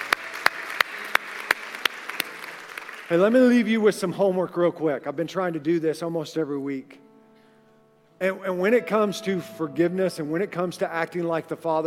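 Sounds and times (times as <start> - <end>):
audience applause: 0.0 - 3.4
speech: 3.1 - 7.0, 8.2 - 11.8.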